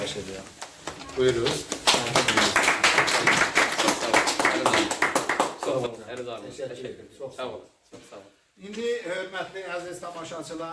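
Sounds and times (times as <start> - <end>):
speech: 0.1 - 0.6, 1.2 - 2.6, 5.8 - 10.7
audience applauding a folk minstrel at a diploma presentation ceremony: 0.4 - 6.4.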